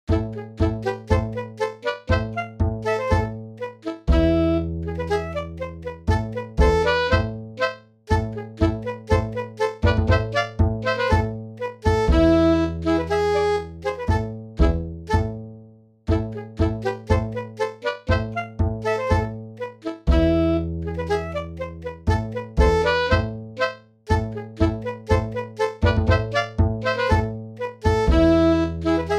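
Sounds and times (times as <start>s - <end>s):
Swedish tango music: 0.1s - 15.4s, 16.1s - 29.1s.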